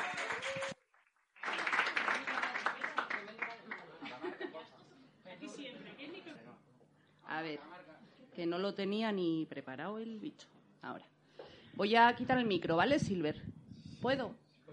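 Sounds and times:
audience applause: 0:00.0 - 0:04.0
laughter: 0:03.9 - 0:04.9
speech: 0:08.4 - 0:11.2, 0:11.8 - 0:14.4.

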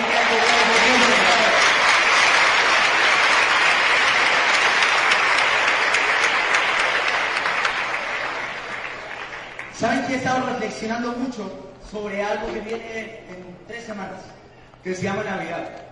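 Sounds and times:
large audience clapping: 0:00.0 - 0:10.6
speech: 0:10.1 - 0:15.9.

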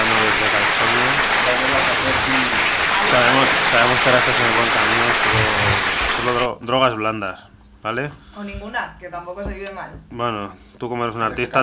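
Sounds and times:
applause: 0:00.0 - 0:06.5
speech: 0:03.8 - 0:11.6.

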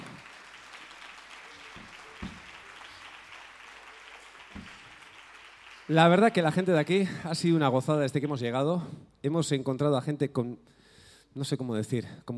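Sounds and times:
sharp claps or thumps: 0:00.0 - 0:07.0
crowd applauding: 0:00.0 - 0:07.6
speech: 0:05.9 - 0:12.3.

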